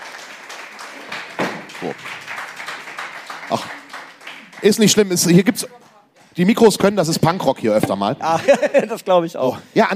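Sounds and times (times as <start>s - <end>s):
audience applause: 0.0s - 5.6s
speech: 1.8s - 2.2s, 3.5s - 3.8s, 4.6s - 9.9s
laughter: 8.2s - 9.2s.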